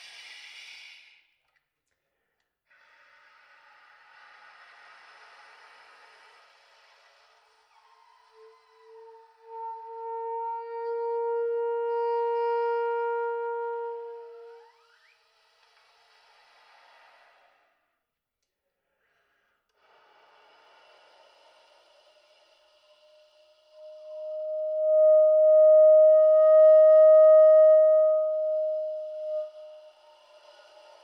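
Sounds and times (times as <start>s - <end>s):
soprano saxophone shifting from air to tone on single notes: 7.7s - 14.7s, 21.6s - 31.0s.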